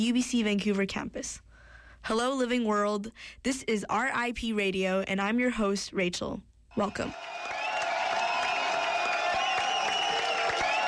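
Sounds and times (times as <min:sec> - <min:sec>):
speech: 0:00.0 - 0:07.4
concert fans cheering: 0:06.7 - 0:10.8
concert fans clapping and whooping: 0:06.8 - 0:10.8.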